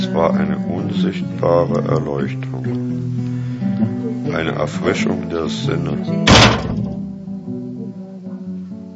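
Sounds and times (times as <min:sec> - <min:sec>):
speech: 0:00.2 - 0:06.8
slap in the face: 0:06.3 - 0:07.0
low humming resonance: 0:06.3 - 0:07.9.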